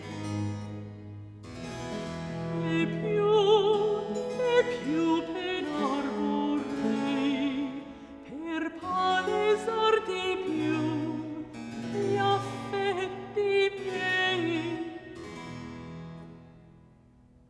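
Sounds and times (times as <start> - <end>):
recitative singing: 2.0 - 15.8.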